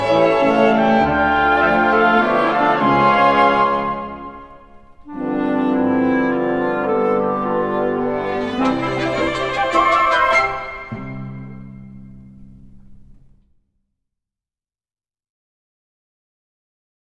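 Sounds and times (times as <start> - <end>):
chamber orchestra minuet: 0.0 - 12.2.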